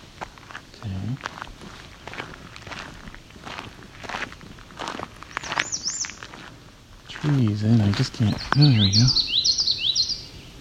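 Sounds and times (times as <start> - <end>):
footsteps crunching on the ground: 0.0 - 9.8
speech: 0.8 - 1.5, 7.2 - 9.4
American redstart call: 5.3 - 6.4, 8.0 - 10.5.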